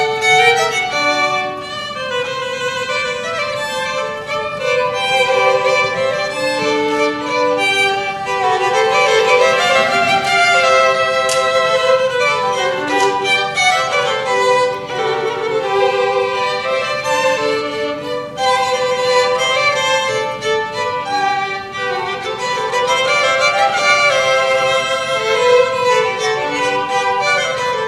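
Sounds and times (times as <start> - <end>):
violin trio playing allegro: 0.0 - 27.8.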